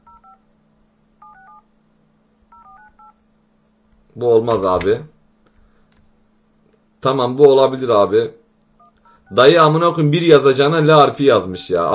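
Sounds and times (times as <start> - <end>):
DTMF touch-tone beeps of a telephone number being dialed: 0.0 - 0.4, 1.2 - 1.6, 2.5 - 3.2, 8.8 - 9.6
faint low hum: 0.0 - 11.9
speech: 4.1 - 5.2, 7.0 - 8.4, 9.3 - 11.9.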